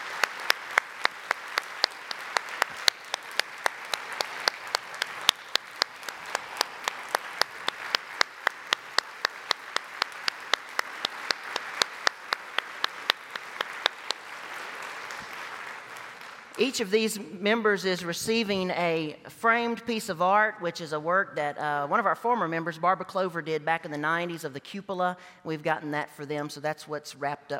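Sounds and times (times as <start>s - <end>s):
crowd applause: 0.0s - 16.8s
speech: 16.6s - 27.5s.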